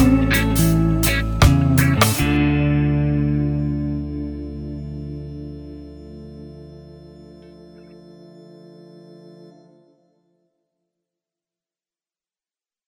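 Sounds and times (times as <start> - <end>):
reggae music: 0.0 - 7.0.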